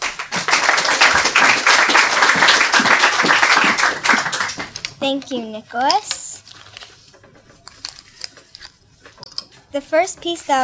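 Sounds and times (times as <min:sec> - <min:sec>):
crowd applauding: 0:00.0 - 0:04.9
speech: 0:05.0 - 0:06.1, 0:09.8 - 0:10.6.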